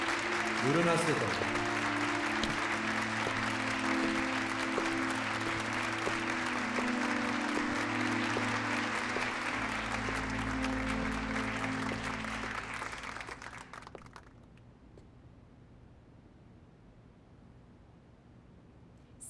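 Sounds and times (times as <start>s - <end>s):
audience applause: 0.0s - 14.5s
speech: 0.6s - 1.7s.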